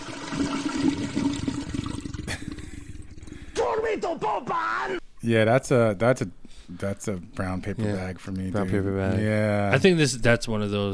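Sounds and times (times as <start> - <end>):
toilet flushing: 0.0 - 3.8
speech: 3.8 - 10.9.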